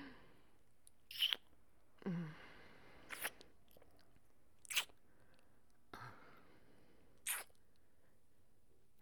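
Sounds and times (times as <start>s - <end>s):
wet noises: 1.1s - 1.5s, 3.1s - 3.9s, 4.6s - 5.0s, 7.2s - 7.6s.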